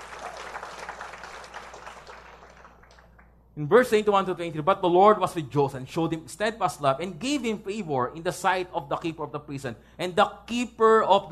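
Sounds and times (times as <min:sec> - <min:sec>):
audience clapping praising God during a sermon: 0:00.0 - 0:03.4
speech: 0:03.6 - 0:11.2.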